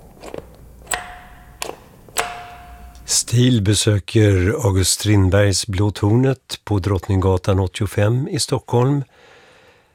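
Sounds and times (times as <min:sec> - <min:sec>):
old doorbell ringing in sharp metallic strikes: 0:00.9 - 0:03.3
speech: 0:03.1 - 0:09.3.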